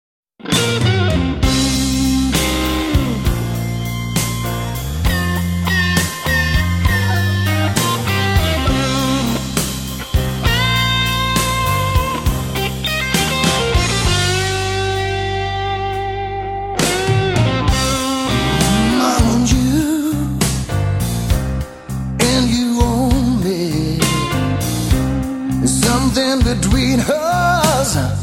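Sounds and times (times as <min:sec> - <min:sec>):
blues music: 0:00.4 - 0:28.2.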